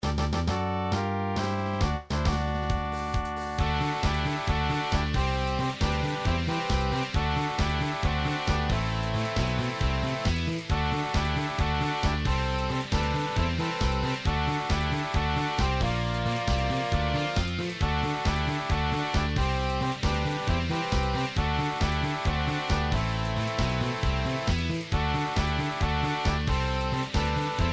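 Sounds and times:
fanfare: 0.4s - 27.7s.

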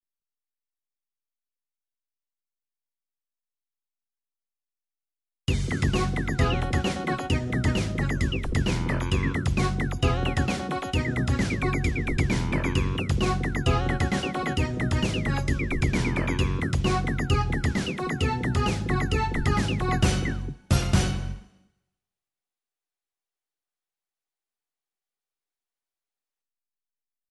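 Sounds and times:
anime cha-cha music: 5.5s - 21.6s.

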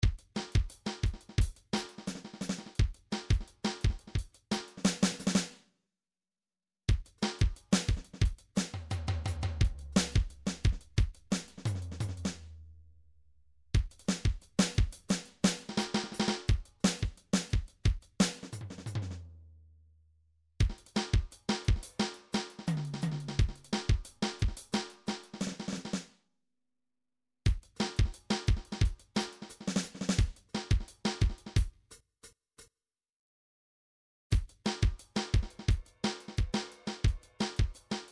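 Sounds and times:
MIDI drum pattern: 0.0s - 5.5s, 6.9s - 12.8s, 13.8s - 19.2s, 20.6s - 26.0s, 27.5s - 32.0s, 34.4s - 38.0s.

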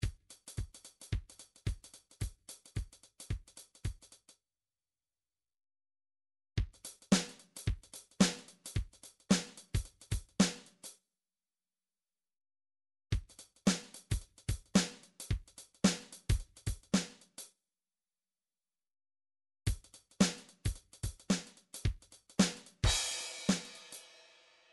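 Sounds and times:
drums: 0.0s - 4.3s, 6.6s - 11.0s, 13.1s - 17.5s, 19.7s - 24.7s.

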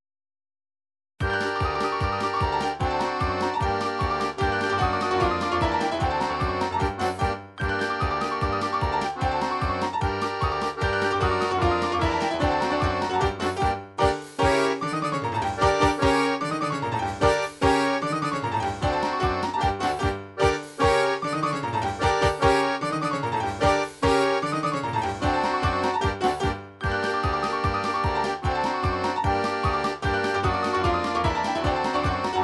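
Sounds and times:
Serbian folk kolo MIDI music: 1.2s - 32.4s.

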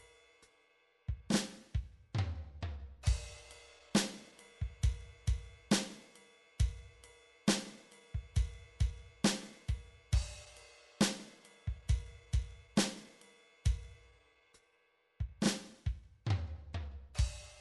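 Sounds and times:
eight-beat rock MIDI drum pattern: 1.1s - 2.1s, 3.0s - 6.0s, 6.6s - 13.1s, 13.7s - 14.0s, 15.2s - 16.2s.

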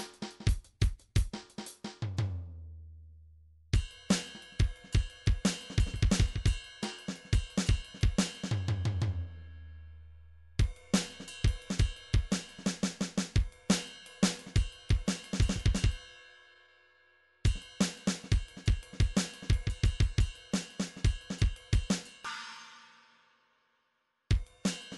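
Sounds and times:
MIDI drum pattern: 0.0s - 2.5s, 3.8s - 9.3s, 10.6s - 16.0s, 17.5s - 22.7s, 24.3s - 24.9s.

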